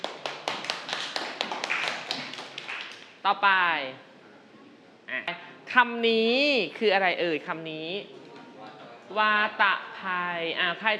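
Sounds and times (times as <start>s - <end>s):
children clapping for a classmate: 0.0s - 3.1s
speech: 3.2s - 4.1s, 5.1s - 8.2s, 9.1s - 10.9s.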